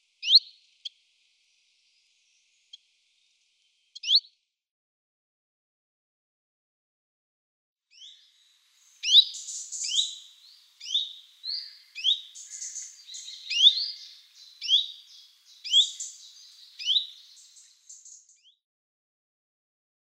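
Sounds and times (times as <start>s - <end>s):
common chiffchaff singing: 9.0s - 18.2s.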